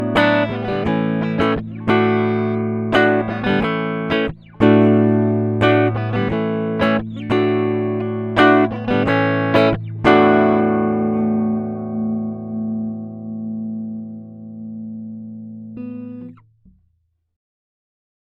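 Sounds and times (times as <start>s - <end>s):
musical riff: 0.1s - 13.5s.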